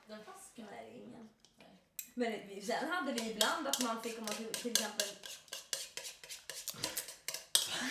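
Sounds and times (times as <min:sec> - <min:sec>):
speech: 0:02.2 - 0:05.4
whisk clinking against bowl while whisking pancake batter: 0:03.1 - 0:07.8.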